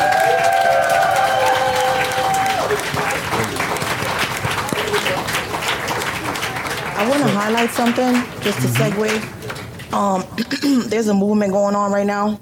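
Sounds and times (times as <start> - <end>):
whistles and cheers: 0.0 - 2.9
crowd applause: 0.0 - 9.9
speech: 7.0 - 12.4.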